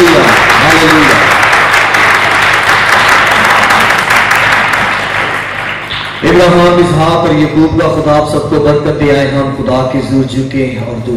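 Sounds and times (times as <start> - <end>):
audience applause: 0.0 - 6.2
speech: 6.4 - 11.1.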